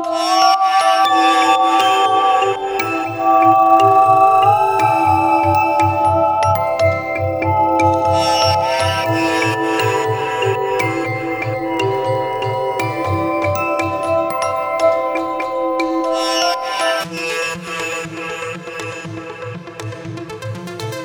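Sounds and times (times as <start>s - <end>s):
bell tones melody: 0.2s - 19.1s
brighter shimmering layers: 0.2s - 19.5s.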